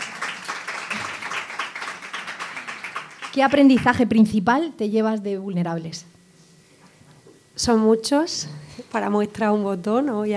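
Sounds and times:
audience applause at a public event: 0:00.0 - 0:03.5
speech: 0:03.4 - 0:06.2, 0:07.6 - 0:10.3.

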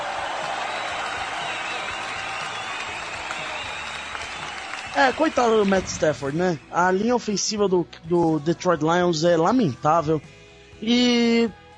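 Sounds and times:
applause: 0:00.0 - 0:06.4
speech: 0:05.0 - 0:11.6.

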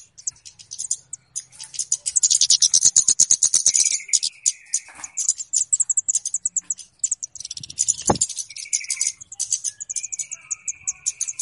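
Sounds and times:
flowerpecker high sharp ticking chips used as a trapping lure: 0:00.0 - 0:11.4.

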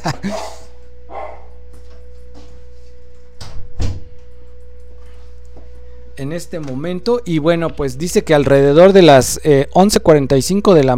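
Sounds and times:
speech: 0:00.2 - 0:00.5, 0:06.2 - 0:10.9
several dogs barking: 0:00.2 - 0:01.7.

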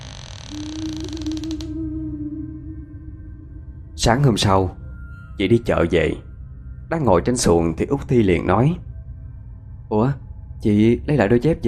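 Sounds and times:
door creaking shut: 0:00.0 - 0:01.8
low steady hum: 0:00.0 - 0:11.6
speech: 0:00.5 - 0:00.9, 0:04.0 - 0:04.8, 0:05.4 - 0:06.3, 0:06.9 - 0:08.9, 0:09.9 - 0:11.6.

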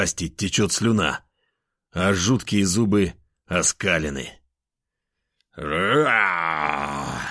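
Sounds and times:
speech: 0:00.0 - 0:01.2, 0:01.9 - 0:04.4, 0:05.6 - 0:07.0
voice imitating a bear's roar: 0:05.6 - 0:07.2.

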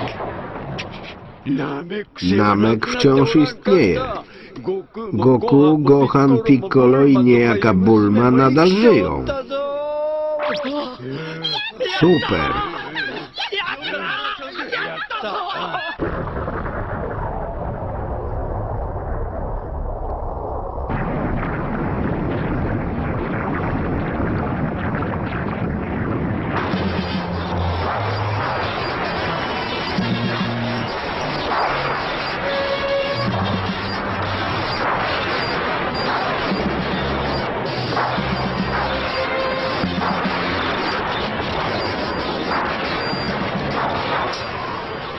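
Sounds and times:
energy attack explosion: 0:00.0 - 0:01.6, 0:16.0 - 0:45.1
laughter: 0:00.9 - 0:16.0
speech: 0:01.4 - 0:09.9, 0:10.5 - 0:13.1, 0:15.2 - 0:16.2.

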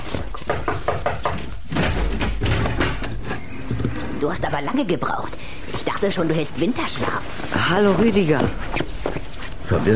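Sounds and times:
knocking: 0:00.1 - 0:04.2
speech: 0:04.2 - 0:08.8, 0:09.7 - 0:09.9.

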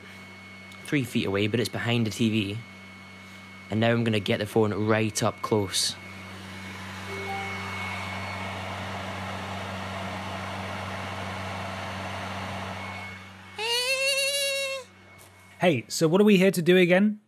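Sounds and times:
PlayStation console running with a whirring hum: 0:00.0 - 0:16.6
speech: 0:00.9 - 0:02.7, 0:03.7 - 0:06.0, 0:15.6 - 0:17.2
wavering harmonic tone rising in pitch: 0:07.1 - 0:08.5.

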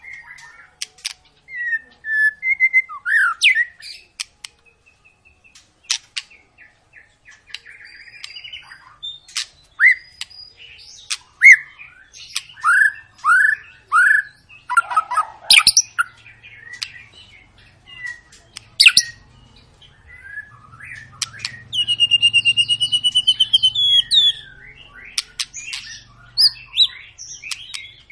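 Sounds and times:
white-rumped shama song with whistles and clicks: 0:01.5 - 0:03.8, 0:09.8 - 0:10.2, 0:11.4 - 0:16.1, 0:20.0 - 0:28.1.

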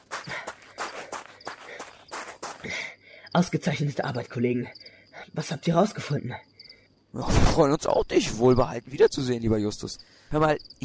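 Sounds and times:
jogging footsteps: 0:00.0 - 0:02.8
person panting: 0:00.0 - 0:03.3
speech: 0:02.6 - 0:06.5, 0:07.1 - 0:10.8.

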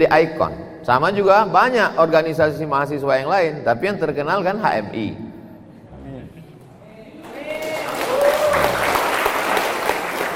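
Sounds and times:
speech: 0:00.0 - 0:05.2
audience applause: 0:07.2 - 0:10.3.

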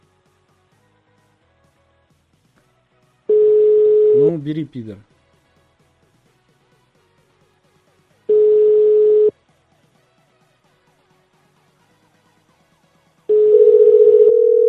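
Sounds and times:
telephone line tone: 0:03.3 - 0:04.4, 0:08.3 - 0:09.3, 0:13.3 - 0:14.6
speech: 0:04.2 - 0:05.1.

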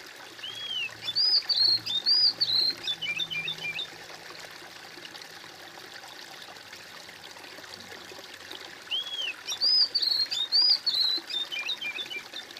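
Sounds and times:
bird whistling: 0:00.4 - 0:03.9, 0:08.9 - 0:12.4.

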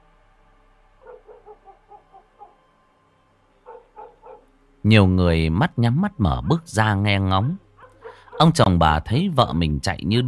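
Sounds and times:
pack of village dogs barking: 0:01.0 - 0:02.7, 0:03.6 - 0:04.5, 0:07.2 - 0:08.7
speech: 0:04.8 - 0:07.6, 0:08.4 - 0:10.2.

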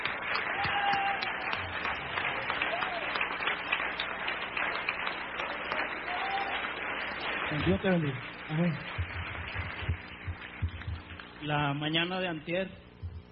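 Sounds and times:
congregation applause at a Spanish-language church service: 0:00.0 - 0:12.3
faint voices and cheers: 0:00.3 - 0:03.3, 0:05.4 - 0:06.8
speech: 0:07.5 - 0:09.2, 0:11.4 - 0:12.8.

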